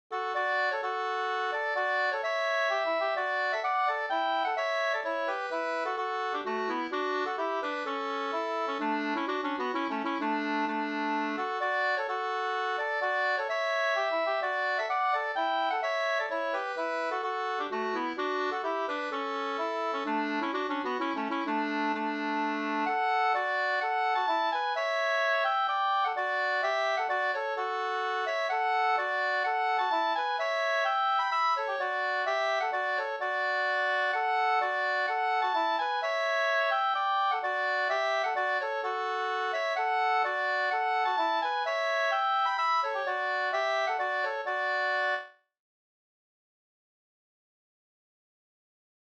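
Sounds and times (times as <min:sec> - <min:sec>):
Rorospols folk dance tune: 0:00.1 - 0:45.3.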